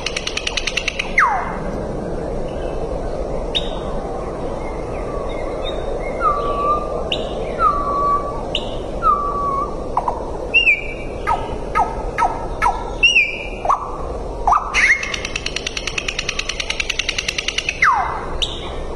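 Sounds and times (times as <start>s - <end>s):
common nightingale song with clicking trill and whistles: 0.0s - 1.7s, 2.4s - 18.8s
constant background hiss: 0.0s - 18.9s.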